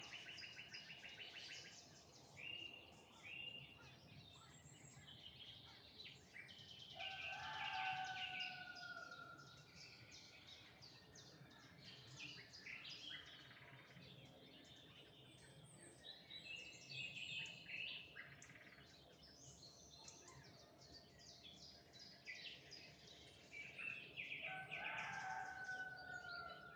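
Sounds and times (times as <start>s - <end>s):
evening birds in the countryside: 0.0s - 26.7s
rooster in the countryside: 7.0s - 9.4s, 24.4s - 26.7s.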